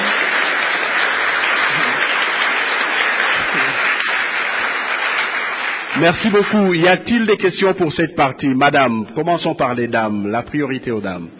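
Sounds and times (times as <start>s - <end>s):
audience applause at a public talk before a question session: 0.0s - 7.0s
speech: 6.0s - 11.3s.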